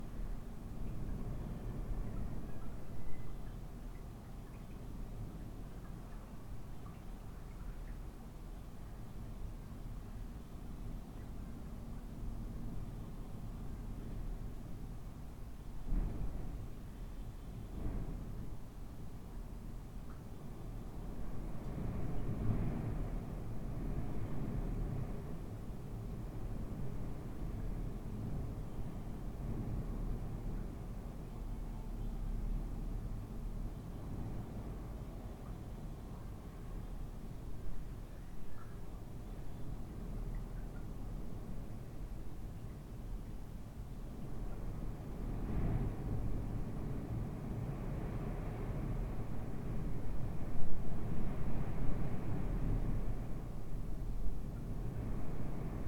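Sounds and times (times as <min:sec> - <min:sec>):
wind in a house: 0:00.0 - 0:55.8.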